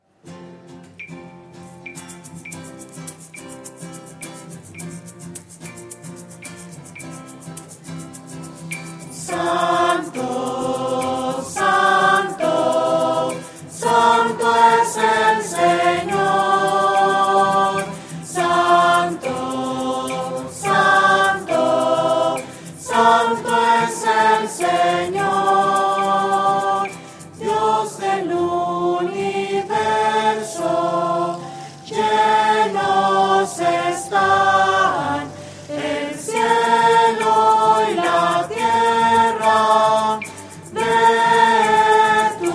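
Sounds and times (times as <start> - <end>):
voices: 9.2 - 42.5.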